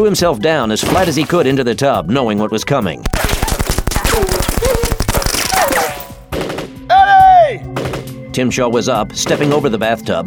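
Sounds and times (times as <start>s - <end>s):
speech: 0.0s - 3.3s, 8.4s - 10.2s
gunfire from several guns: 3.1s - 6.2s.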